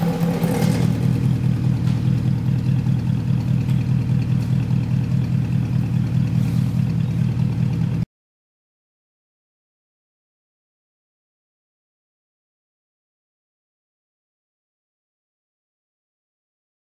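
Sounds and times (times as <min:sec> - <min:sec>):
Porsche Cayenne Turbo engine: 0:00.0 - 0:08.0.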